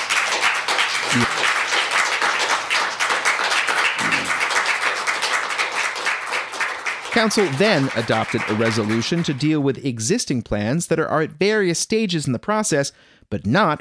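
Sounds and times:
audience clapping at a council meeting: 0.0s - 9.8s
speech: 1.1s - 1.6s, 7.2s - 13.7s.

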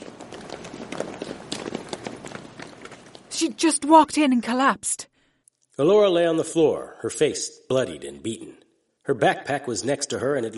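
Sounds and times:
footsteps of a woman dancer running down a hallway: 0.0s - 3.4s
speech: 3.4s - 5.1s, 5.8s - 10.5s.

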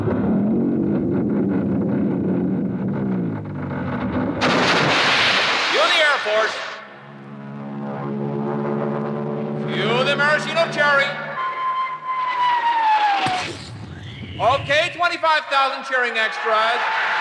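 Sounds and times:
heavy low rumble: 0.0s - 5.6s, 6.8s - 11.4s
deep foghorn-like drone: 0.0s - 5.7s, 6.7s - 14.8s
loud hissing splashing burst with rising whistles: 4.4s - 6.8s
speech: 10.4s - 11.3s, 14.4s - 17.1s.

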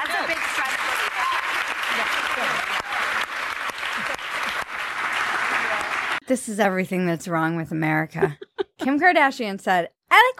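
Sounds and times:
studio audience applause: 0.0s - 6.2s
laughter: 3.8s - 4.8s, 8.2s - 9.0s
speech: 6.3s - 10.3s.

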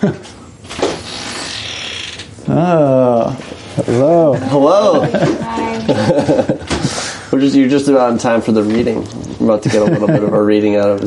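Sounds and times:
speech: 0.0s - 0.3s, 2.6s - 11.0s
door hinges creaking: 0.7s - 2.4s
laughter: 3.8s - 7.0s, 9.5s - 10.8s.

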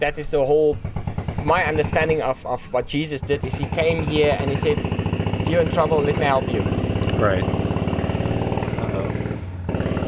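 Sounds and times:
speech: 0.0s - 7.6s
boat engine starting up: 0.7s - 2.4s, 3.2s - 10.0s.

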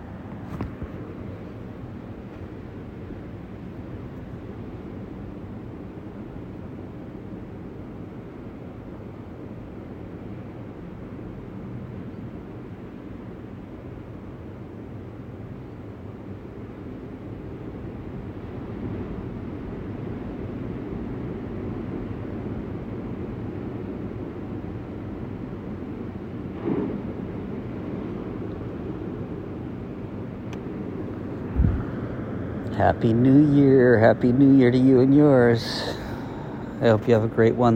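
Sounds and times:
speech: 32.8s - 36.0s, 36.8s - 37.7s
ocean waves: 35.6s - 37.3s.

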